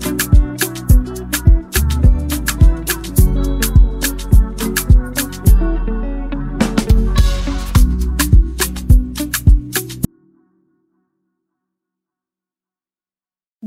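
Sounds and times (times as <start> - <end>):
afrobeat instrumental music: 0.0 - 10.1.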